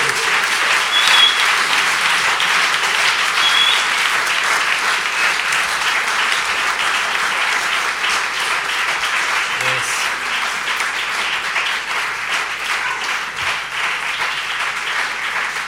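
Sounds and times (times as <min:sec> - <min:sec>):
audience applause: 0:00.0 - 0:15.6.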